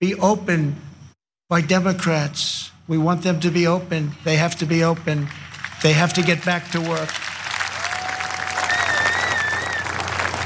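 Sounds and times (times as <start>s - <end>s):
speech: 0.0s - 0.8s, 1.5s - 7.3s
crowd applauding: 4.9s - 10.4s
whistles: 8.1s - 10.0s.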